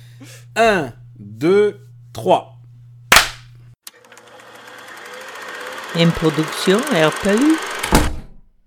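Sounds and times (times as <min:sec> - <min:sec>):
speech: 0:00.2 - 0:02.5, 0:06.0 - 0:07.8
loud sharp hand clap: 0:03.1 - 0:03.4
steady mechanical whirring rattle: 0:03.8 - 0:08.2.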